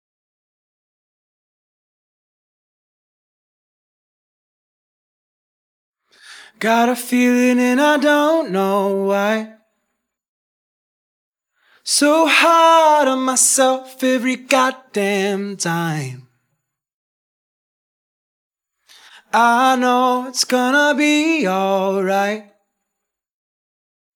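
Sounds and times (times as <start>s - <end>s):
person singing alone: 6.5s - 9.6s, 11.9s - 16.3s, 19.2s - 22.5s.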